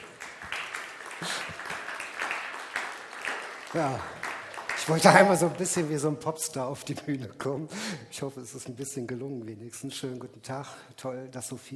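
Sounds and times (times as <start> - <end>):
applause: 0.0 - 6.1
speech: 1.2 - 1.7, 3.7 - 4.2, 4.8 - 11.7.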